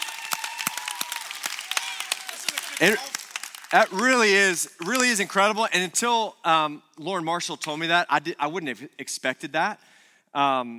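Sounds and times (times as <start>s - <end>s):
audience applause: 0.0s - 5.2s
speech: 2.8s - 3.1s, 3.7s - 10.7s.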